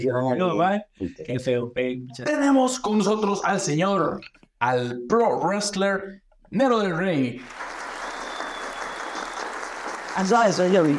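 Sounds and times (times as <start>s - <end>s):
speech: 0.0s - 7.8s, 10.2s - 10.9s
group applause: 7.4s - 10.9s.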